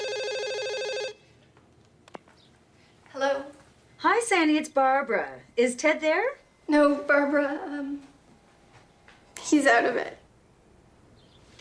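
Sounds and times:
house telephone ringing with an electronic warbling trill: 0.0s - 1.2s
speech: 4.2s - 8.1s, 9.5s - 10.2s.

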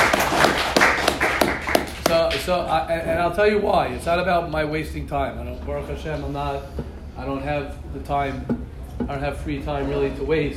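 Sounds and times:
scattered hand claps from a small group: 0.0s - 2.5s
speech: 2.5s - 10.5s.

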